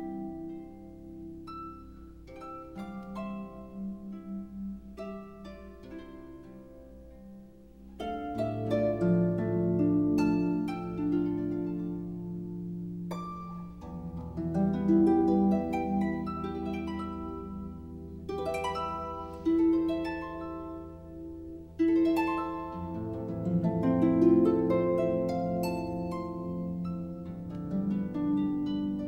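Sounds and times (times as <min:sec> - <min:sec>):
instrumental harp praise music: 0:00.0 - 0:29.0.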